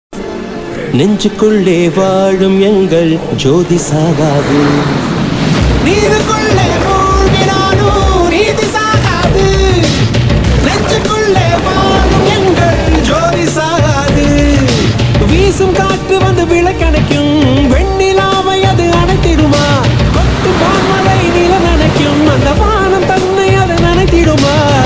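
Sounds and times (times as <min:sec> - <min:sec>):
Tamil devotional song to Murugan: 0:00.6 - 0:24.8
laughter: 0:05.8 - 0:15.0.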